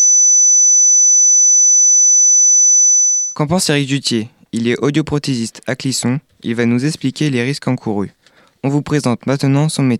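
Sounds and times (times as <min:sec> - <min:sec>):
high-pitched pure tone imitating tinnitus: 0:00.0 - 0:03.4
speech: 0:03.4 - 0:09.9.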